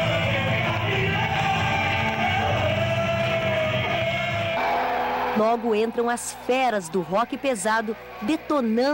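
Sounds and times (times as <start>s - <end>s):
large concert crowd cheering at Pedreira Paulo Leminski: 0.0s - 8.9s
speech: 5.4s - 8.9s.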